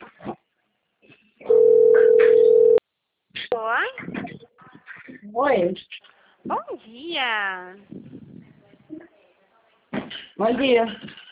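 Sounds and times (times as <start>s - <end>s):
telephone ringing for an incoming call: 1.4s - 2.8s
speech: 5.4s - 8.0s, 10.4s - 11.2s.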